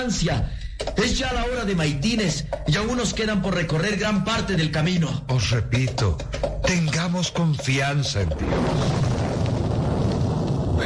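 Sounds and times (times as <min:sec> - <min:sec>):
speech: 0:00.0 - 0:09.2
thunder of a passing storm: 0:08.4 - 0:10.8.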